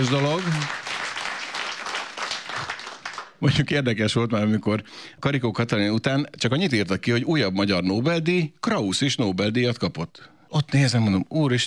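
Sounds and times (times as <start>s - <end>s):
speech: 0.0s - 0.8s, 3.4s - 11.6s
audience applause for two Nobel laureates at a New Year's Eve radio cabaret: 0.0s - 3.4s.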